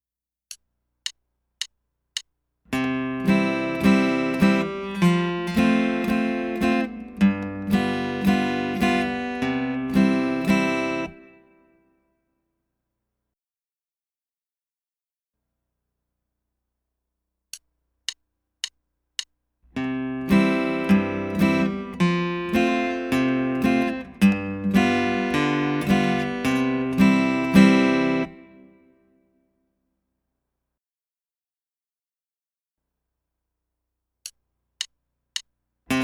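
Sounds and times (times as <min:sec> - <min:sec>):
guitar chord accompaniment in C in three-four time: 0:02.8 - 0:11.6, 0:19.8 - 0:28.8.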